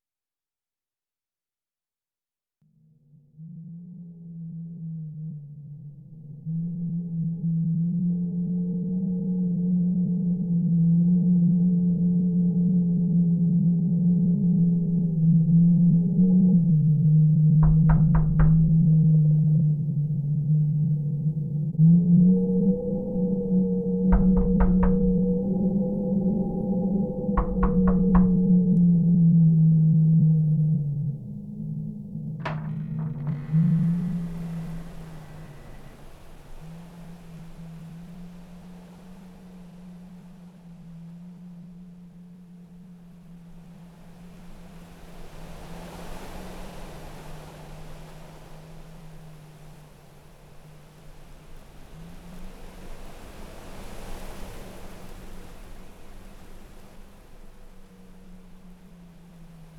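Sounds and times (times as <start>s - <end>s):
wind: 2.8s - 59.7s
door latch: 17.6s - 18.8s, 24.1s - 25.4s, 27.3s - 28.6s, 32.4s - 34.5s
door knocks: 17.6s - 19.3s, 24.1s - 25.8s, 26.4s - 28.8s, 32.4s - 34.5s.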